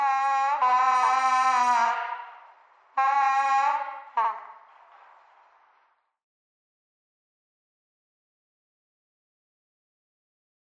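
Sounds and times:
bagpipe playing over radio: 0:00.0 - 0:02.4, 0:03.0 - 0:04.4.

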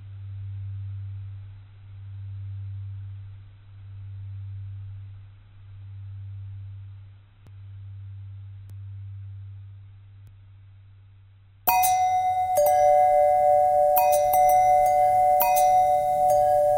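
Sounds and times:
long bending bell tones: 0:11.7 - 0:16.7.

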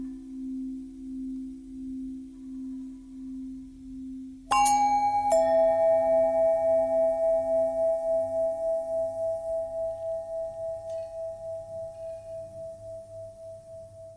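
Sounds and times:
long pentatonic bells: 0:04.5 - 0:14.1.

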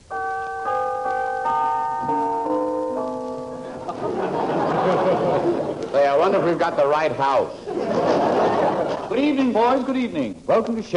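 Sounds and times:
doorbell ringing: 0:00.0 - 0:04.4
laughter: 0:03.6 - 0:06.9, 0:07.6 - 0:09.4
speech: 0:06.2 - 0:08.1, 0:09.2 - 0:10.9.

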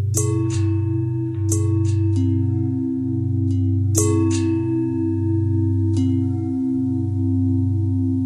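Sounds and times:
long bell ringing: 0:00.0 - 0:08.1.

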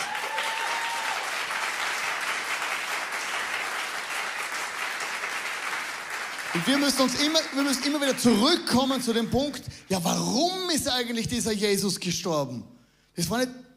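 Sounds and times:
audience applause: 0:00.0 - 0:09.2
speech: 0:06.5 - 0:13.7.

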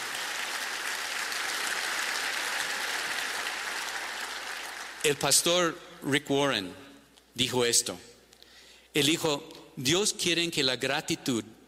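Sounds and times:
audience applause: 0:00.0 - 0:05.1
speech: 0:05.0 - 0:06.8, 0:07.4 - 0:08.1, 0:09.0 - 0:11.6.

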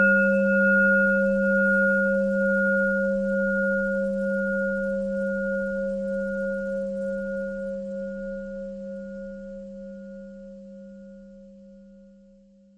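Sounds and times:
pentatonic bell melody: 0:00.0 - 0:09.8.

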